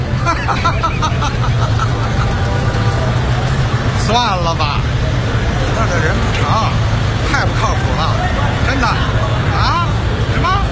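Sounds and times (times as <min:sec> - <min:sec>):
laughter: 0:00.0 - 0:04.3
murmur of voices: 0:00.0 - 0:10.6
traffic jam engine rumble: 0:00.0 - 0:10.6
speech: 0:00.4 - 0:02.0, 0:04.1 - 0:05.2, 0:05.8 - 0:09.8.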